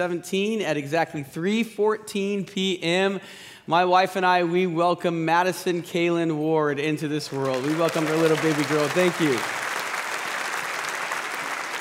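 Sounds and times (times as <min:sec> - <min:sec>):
speech: 0:00.0 - 0:09.7
audience applause: 0:07.3 - 0:11.8.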